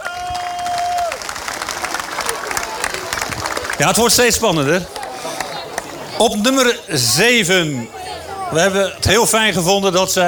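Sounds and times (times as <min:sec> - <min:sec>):
scattered cheers: 0:00.0 - 0:05.6
audience applause: 0:00.0 - 0:06.3
speech: 0:03.8 - 0:05.0, 0:06.2 - 0:10.2.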